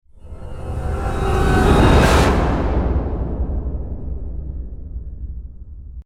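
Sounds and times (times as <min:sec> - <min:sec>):
scary winds: 0:00.0 - 0:06.0.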